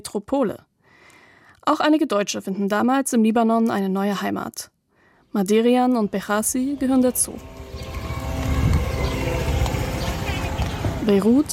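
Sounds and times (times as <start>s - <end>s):
speech: 0.0s - 0.7s, 1.6s - 4.7s, 5.3s - 7.6s, 11.1s - 11.5s
Israeli military drones humming over Beirut: 6.2s - 11.5s.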